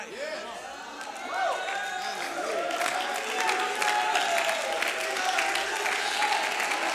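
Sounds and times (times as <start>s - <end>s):
crowd shouting and calling out: 0.2s - 6.9s
audience clapping: 0.8s - 6.9s.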